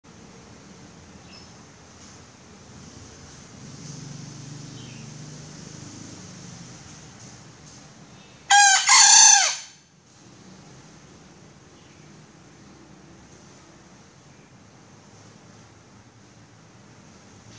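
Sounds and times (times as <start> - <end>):
female junglefowl giving a raspy crow-like call: 8.5 - 9.8.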